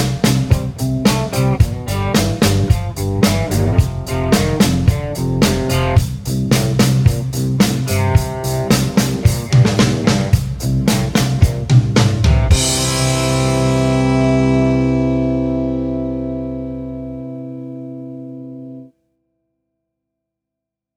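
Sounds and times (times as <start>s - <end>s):
blues rock piano in C: 0.0s - 18.9s.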